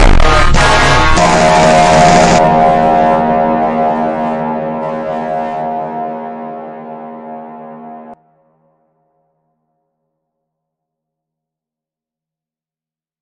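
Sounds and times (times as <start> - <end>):
slowed funk music with reverb: 0.0 - 8.2.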